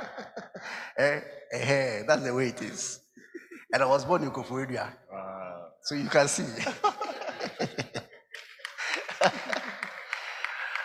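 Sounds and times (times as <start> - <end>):
laughter: 0.0 - 0.8, 6.2 - 10.8
speech: 1.0 - 3.0, 3.7 - 5.0, 5.8 - 7.0, 9.2 - 9.5
clapping: 8.3 - 10.8.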